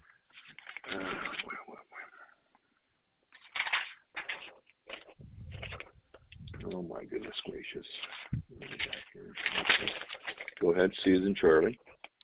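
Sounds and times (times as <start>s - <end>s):
sheets of paper rustling as someone rummages: 0.3s - 1.6s, 3.3s - 10.9s
low rubbing thud: 5.2s - 7.0s, 8.3s - 8.7s
speech: 7.0s - 8.2s, 10.6s - 11.8s.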